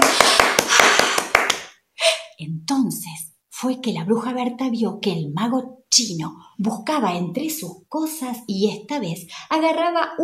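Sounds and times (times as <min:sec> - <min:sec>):
hands clapping: 0:00.0 - 0:01.8
speech: 0:02.4 - 0:10.2.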